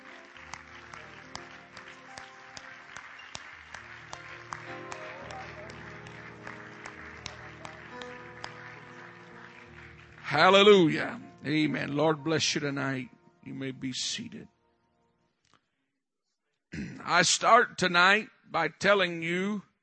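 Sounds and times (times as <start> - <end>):
audience clapping hands: 0.0 - 11.2
speech: 10.4 - 14.5, 17.1 - 19.7.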